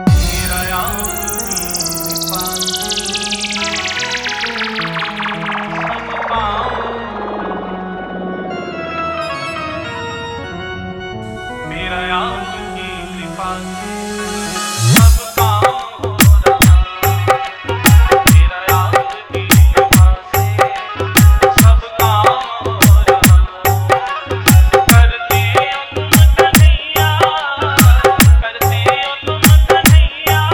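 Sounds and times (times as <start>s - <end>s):
dholki bass mix: 0.0s - 7.8s, 14.5s - 30.5s.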